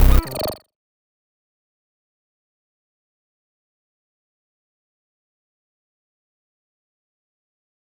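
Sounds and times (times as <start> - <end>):
glitch sound: 0.0 - 0.6.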